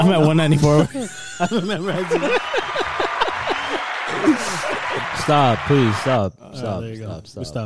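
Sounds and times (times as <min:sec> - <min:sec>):
speech: 0:00.0 - 0:02.9, 0:05.3 - 0:07.6
laughter: 0:00.0 - 0:06.2
canned soundboard applause effect: 0:01.9 - 0:06.2.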